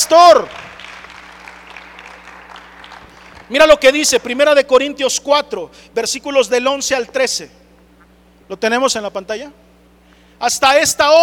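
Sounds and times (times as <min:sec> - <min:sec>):
speech: 0:00.0 - 0:00.7, 0:03.5 - 0:07.6, 0:08.5 - 0:09.7, 0:10.4 - 0:11.2
audience applause: 0:00.5 - 0:03.5.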